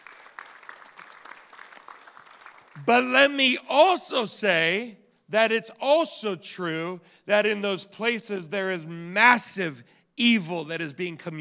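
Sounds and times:
church audience applauding: 0.0s - 3.0s
speech: 2.8s - 11.3s.

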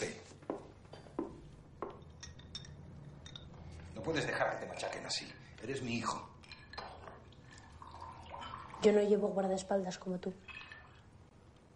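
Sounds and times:
soft glassy clinks: 2.0s - 3.5s
speech: 4.0s - 6.3s, 8.8s - 10.5s
whisky trickling into a glass: 6.4s - 9.2s, 10.4s - 11.1s.

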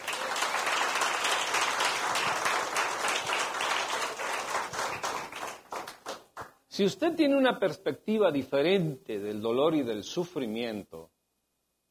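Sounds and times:
crowd applauding: 0.0s - 6.6s
speech: 6.8s - 11.0s.

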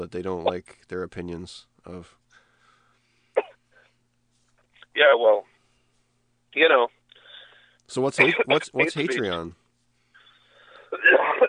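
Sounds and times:
speech: 0.0s - 2.2s, 5.0s - 5.5s, 6.5s - 7.0s, 7.9s - 9.6s
harsh coughing: 3.4s - 3.6s
wheezy breath intake: 7.1s - 7.8s, 10.0s - 11.0s.

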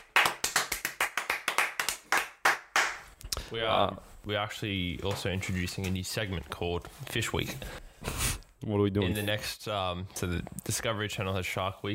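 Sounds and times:
hands clapping: 0.0s - 3.1s
speech: 3.5s - 11.9s.

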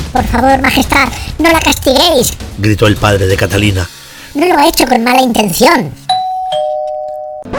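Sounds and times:
speech: 0.2s - 6.1s
doorbell ringing two-note ding-dong: 6.1s - 7.5s.

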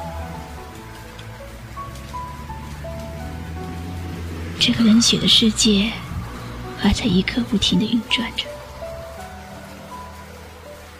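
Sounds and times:
pattering rain: 0.0s - 10.9s
speech: 4.6s - 6.0s, 6.8s - 8.5s.

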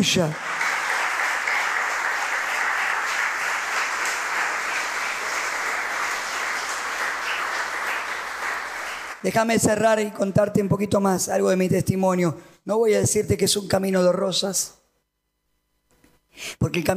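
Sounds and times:
speech: 0.0s - 0.5s, 9.2s - 14.8s, 16.4s - 16.9s
audience applause: 0.0s - 9.2s.

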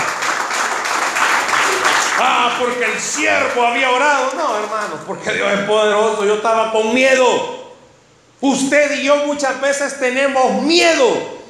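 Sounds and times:
audience applauding: 0.0s - 5.2s
speech: 2.2s - 7.6s, 8.4s - 11.3s.

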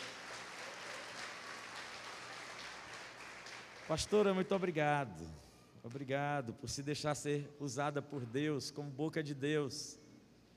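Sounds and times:
audience applauding: 0.0s - 4.6s
speech: 3.9s - 10.0s.

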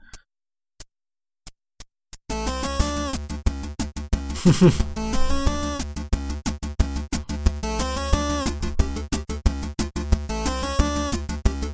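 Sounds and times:
8-bit chiptune music: 2.3s - 11.7s
speech: 4.4s - 5.0s
laughter: 4.4s - 5.5s.

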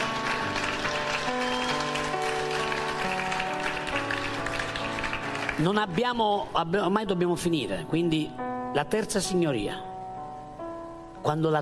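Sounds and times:
audience applauding: 0.0s - 6.0s
sustained keyboard chords: 0.0s - 11.5s
speech: 5.6s - 9.9s, 11.2s - 11.5s.

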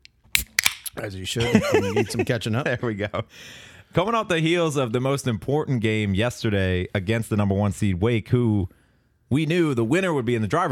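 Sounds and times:
beer can being cracked open: 0.3s - 1.0s
speech: 1.0s - 10.7s
laughter: 1.4s - 3.2s.

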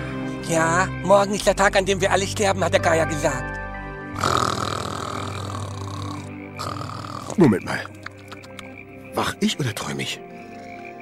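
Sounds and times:
speech: 0.5s - 3.6s, 7.4s - 8.0s, 9.2s - 10.2s
loud raspy snore: 4.2s - 7.8s.

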